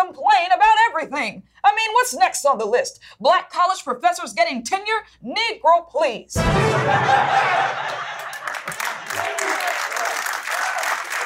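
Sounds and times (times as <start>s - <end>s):
speech: 1.0s - 8.1s
laughter: 6.5s - 10.9s
audience clapping: 7.6s - 11.2s.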